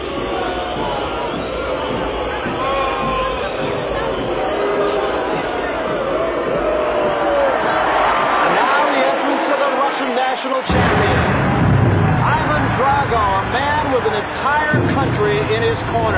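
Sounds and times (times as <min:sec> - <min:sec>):
crowd whistles: 0:00.0 - 0:05.7
huge arena crowd cheering and shouting: 0:00.0 - 0:16.1.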